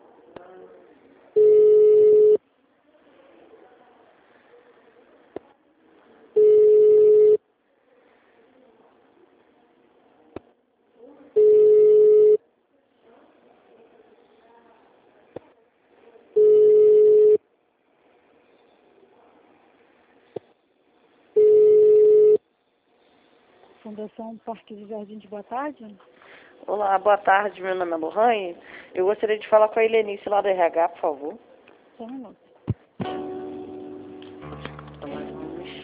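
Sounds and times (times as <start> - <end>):
faint murmur: 0.0 - 35.8
telephone ringback tone on an outgoing call: 1.4 - 2.4, 6.4 - 7.4, 11.4 - 12.4, 16.4 - 17.4, 21.4 - 22.4
speech: 23.9 - 31.4, 32.0 - 32.4.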